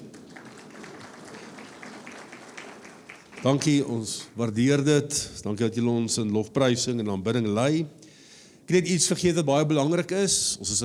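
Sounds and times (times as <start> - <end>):
audience applauding the musicians: 0.0 - 4.4
speech: 3.4 - 8.0, 8.7 - 10.8.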